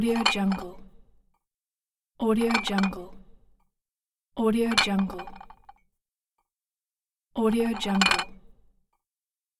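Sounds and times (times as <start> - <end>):
plate rattling: 0.2 - 0.6, 2.5 - 2.9, 4.7 - 5.5, 7.7 - 8.3.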